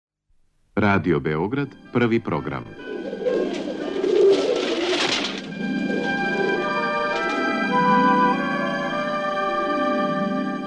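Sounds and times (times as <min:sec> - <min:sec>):
speech: 0:00.8 - 0:02.9
pigeons cooing: 0:02.7 - 0:10.4.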